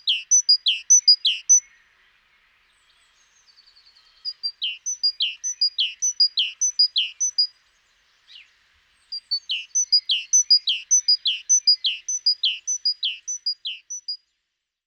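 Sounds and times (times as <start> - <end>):
great tit Parus major calls: 0.0 - 1.7, 4.0 - 7.5, 9.1 - 14.2.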